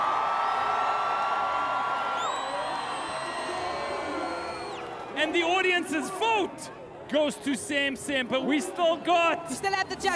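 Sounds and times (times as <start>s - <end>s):
crowd clapping and cheering: 0.0s - 5.5s
shrill whistle: 2.1s - 4.9s
speech: 5.2s - 10.1s.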